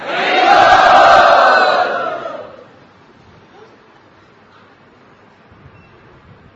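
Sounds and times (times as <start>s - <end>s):
crowd loudly chanting: 0.0s - 2.7s.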